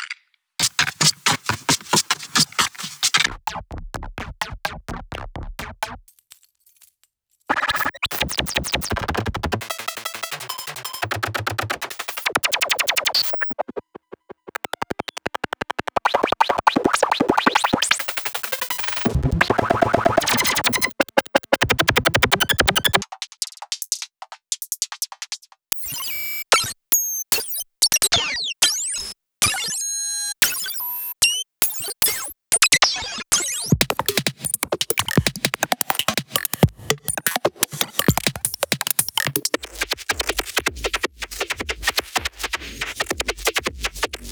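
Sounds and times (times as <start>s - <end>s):
layered glitchy percussion: 0.6s - 6.1s, 7.5s - 28.2s, 30.4s - 44.3s.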